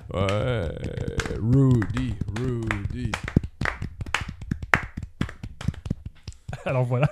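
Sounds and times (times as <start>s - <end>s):
hands clapping applauding hockey player Sergei Gonchar: 0.0s - 7.0s
speech: 0.1s - 2.1s, 6.6s - 7.1s.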